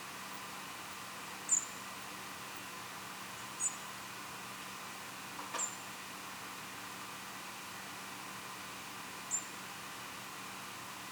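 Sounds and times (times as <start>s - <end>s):
low steady hiss: 0.0s - 11.1s
European robin giving a thin tseep note: 1.5s - 1.8s.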